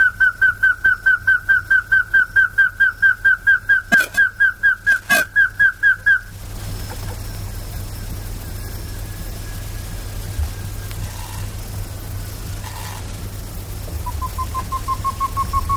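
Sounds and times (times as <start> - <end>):
rail giving repeated whistled notes: 1.1 - 11.6, 14.0 - 15.7
hiss: 6.0 - 15.7.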